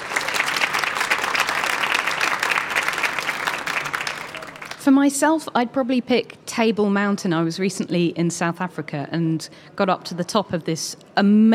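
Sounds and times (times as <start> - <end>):
audience applause welcoming a panel: 0.0 - 4.8
speech: 4.9 - 11.5.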